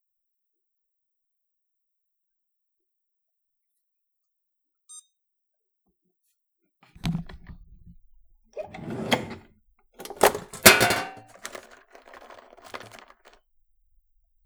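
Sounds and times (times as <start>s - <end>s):
coffee machine: 8.6s - 13.4s.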